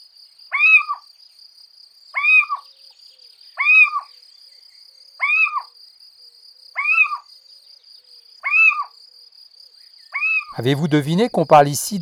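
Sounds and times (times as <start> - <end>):
little owl calls: 0.5 - 1.1, 2.2 - 2.7, 3.6 - 4.1, 5.2 - 5.7, 6.8 - 7.3, 8.4 - 9.0, 10.1 - 11.0
speech: 10.6 - 12.0.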